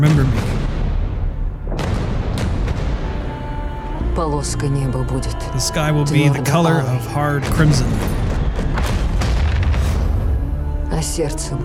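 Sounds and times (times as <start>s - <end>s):
speech: 0.0s - 0.4s, 4.3s - 8.2s, 11.0s - 11.6s
thunder: 0.0s - 4.0s, 7.5s - 10.7s.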